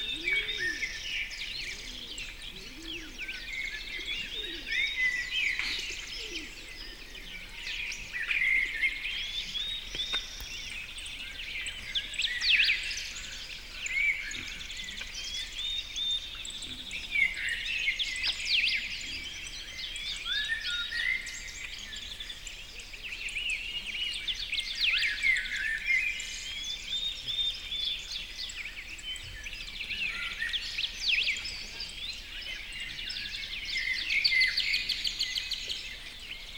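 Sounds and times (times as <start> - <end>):
tranquil birdsong: 0.0 - 36.5.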